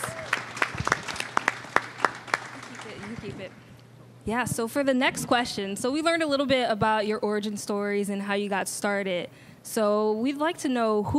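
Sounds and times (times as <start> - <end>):
audience applause: 0.0 - 3.6
speech: 3.2 - 11.1.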